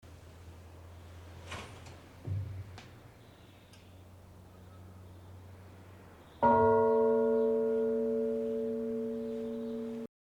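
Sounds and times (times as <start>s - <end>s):
bell ringing: 6.4s - 10.1s.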